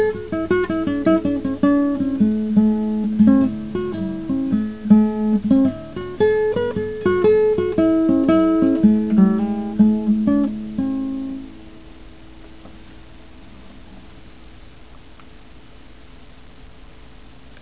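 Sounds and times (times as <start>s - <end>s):
blues music: 0.0s - 13.0s.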